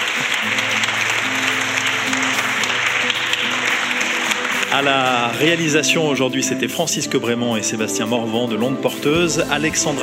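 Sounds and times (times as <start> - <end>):
audience applause: 0.0 - 5.9
speech: 4.7 - 10.0.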